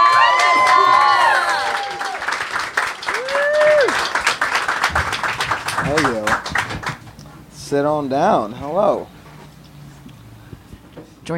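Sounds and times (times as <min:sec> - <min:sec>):
high rising shouts: 0:00.0 - 0:02.4, 0:03.0 - 0:04.1
audience applause and cheering: 0:00.0 - 0:07.2
speech: 0:07.7 - 0:09.2.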